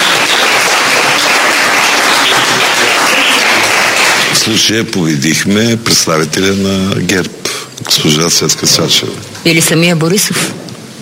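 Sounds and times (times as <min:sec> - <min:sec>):
crowd applause: 0:00.0 - 0:04.8
speech: 0:04.4 - 0:10.6.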